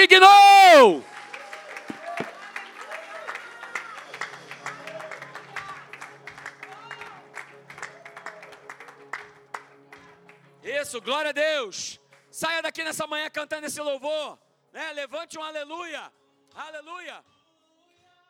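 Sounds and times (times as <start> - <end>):
speech: 0.0 - 1.1, 10.9 - 17.3
audience applauding: 0.0 - 11.2.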